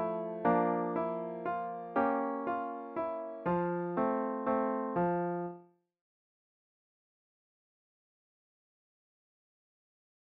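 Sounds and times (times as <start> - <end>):
piano: 0.0 - 5.7.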